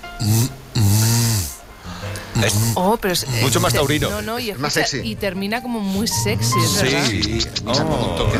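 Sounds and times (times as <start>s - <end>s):
speech: 0.2s - 0.9s, 2.4s - 8.3s
voice imitating a buzzing sound in raspy hissing bursts: 0.2s - 1.6s, 2.3s - 3.8s.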